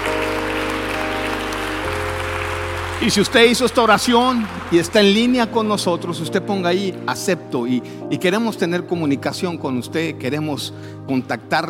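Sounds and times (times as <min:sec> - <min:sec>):
loud sustained crowd applause: 0:00.0 - 0:06.2
held keyboard chords: 0:00.0 - 0:11.6
speech: 0:03.0 - 0:11.6.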